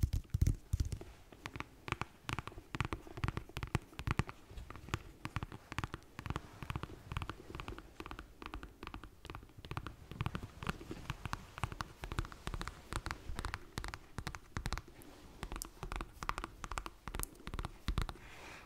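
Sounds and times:
slow tapping on various objects: 0.0 - 18.2.

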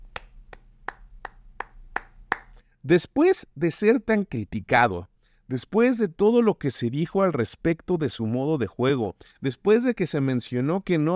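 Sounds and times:
applause: 1.6 - 2.5
speech: 2.8 - 11.1.

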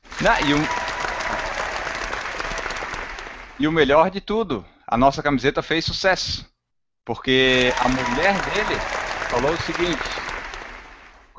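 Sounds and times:
round of applause: 0.0 - 3.8, 7.3 - 11.3
speech: 0.2 - 0.8, 3.6 - 6.5, 7.1 - 10.2.

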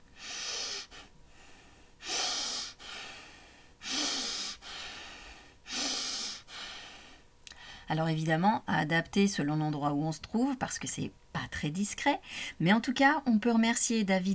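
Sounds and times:
rapid repeated sharp inhalations: 0.0 - 7.9
speech: 7.9 - 14.3.

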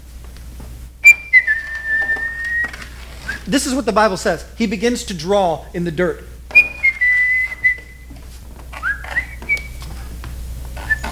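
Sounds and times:
faint low hum: 0.0 - 11.1
birds singing: 1.0 - 3.5, 6.5 - 8.2, 8.8 - 10.0, 10.8 - 11.1
speech: 3.5 - 6.7.

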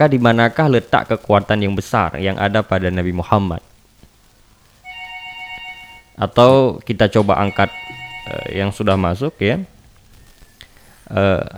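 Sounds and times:
speech: 0.0 - 3.7, 6.2 - 9.7, 11.1 - 11.5
faint noise: 0.0 - 11.5
telephone ringtone: 4.8 - 6.2, 7.4 - 8.9.

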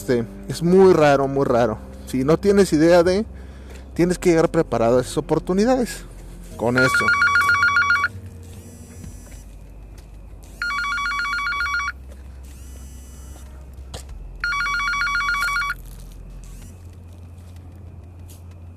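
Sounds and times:
speech: 0.0 - 3.4, 4.0 - 7.2
telephone ringing with an incoming call: 6.8 - 9.4, 10.5 - 12.0, 14.4 - 16.0.

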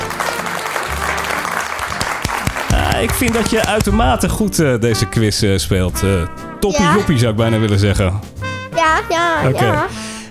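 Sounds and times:
applause: 0.0 - 3.8
speech: 3.0 - 10.2.

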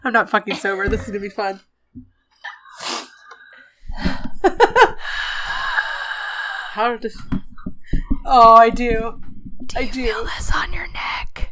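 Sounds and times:
speech: 0.0 - 2.1, 6.8 - 7.4, 8.3 - 11.5
heavy breathing into a microphone: 2.7 - 7.1.

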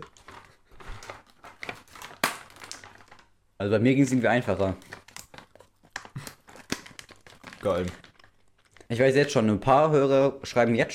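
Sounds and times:
crinkly plastic food packaging being crumpled and torn open: 0.0 - 3.4, 4.5 - 9.5
speech: 3.6 - 4.9, 7.6 - 8.0, 8.9 - 10.9.

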